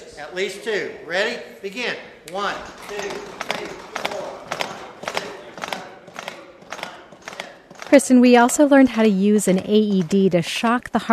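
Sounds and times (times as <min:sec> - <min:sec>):
speech: 0:00.2 - 0:04.2, 0:07.9 - 0:11.1
CPR training mannequin chest clicking during compressions: 0:02.3 - 0:08.6, 0:09.6 - 0:10.4.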